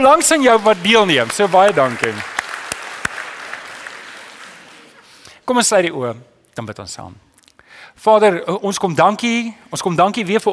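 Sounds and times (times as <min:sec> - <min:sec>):
speech: 0:00.0 - 0:02.3, 0:05.5 - 0:07.3, 0:08.0 - 0:10.5
crowd clapping: 0:00.0 - 0:05.3.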